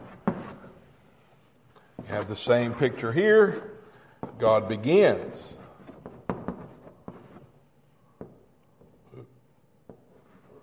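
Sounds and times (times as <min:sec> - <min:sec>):
handwriting scratching: 0:00.0 - 0:01.0, 0:01.9 - 0:07.6, 0:09.9 - 0:10.6
speech: 0:02.0 - 0:03.8, 0:04.4 - 0:05.6.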